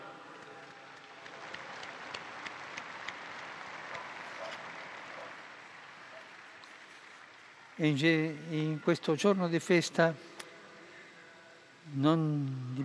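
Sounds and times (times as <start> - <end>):
crowd applauding in a square: 0.0 - 9.1
speech: 7.8 - 10.3, 12.0 - 12.8.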